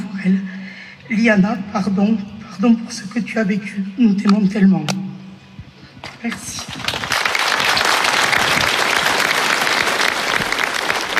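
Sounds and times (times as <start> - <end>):
speech: 0.2 - 0.5, 1.1 - 5.0, 6.2 - 7.0
audience applause: 6.8 - 11.1.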